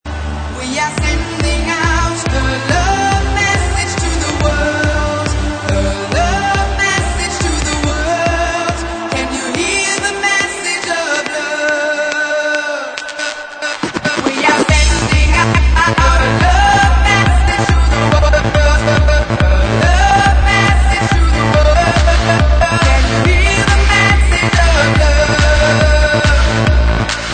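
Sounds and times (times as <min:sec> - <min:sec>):
club remix: 0:00.1 - 0:27.3.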